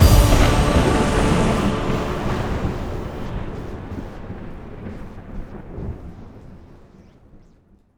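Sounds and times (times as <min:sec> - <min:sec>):
big win ending jingle: 0:00.0 - 0:04.5.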